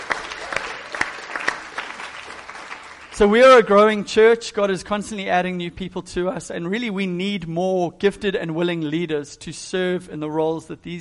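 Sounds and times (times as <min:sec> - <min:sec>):
audience applauding: 0:00.0 - 0:03.9
speech: 0:03.2 - 0:10.9.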